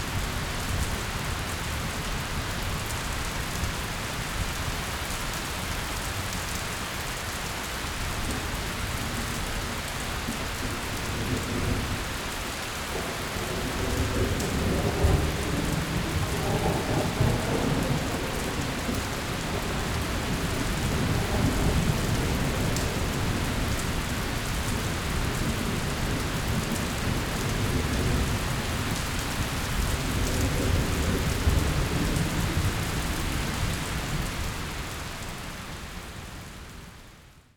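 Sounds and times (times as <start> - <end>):
rain: 0.0 - 37.5
thunder: 13.0 - 33.8.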